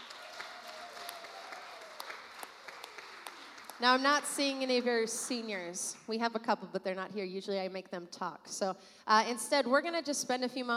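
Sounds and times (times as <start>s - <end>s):
audience applause: 0.0s - 4.6s
speech: 3.8s - 10.7s.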